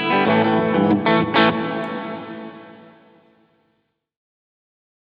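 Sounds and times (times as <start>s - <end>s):
hall plate reverb: 0.2s - 3.1s.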